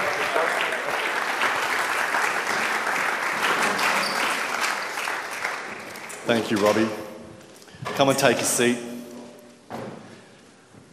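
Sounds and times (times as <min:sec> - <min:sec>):
audience applause welcoming a panel onto a stage: 0:00.0 - 0:06.5
speech: 0:06.3 - 0:07.0, 0:08.0 - 0:08.9.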